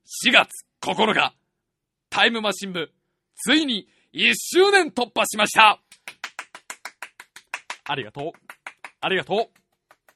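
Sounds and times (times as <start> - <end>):
speech: 0.1 - 1.4, 2.1 - 6.1, 7.9 - 9.6
hand fan slapped like clapping hands: 5.9 - 10.1.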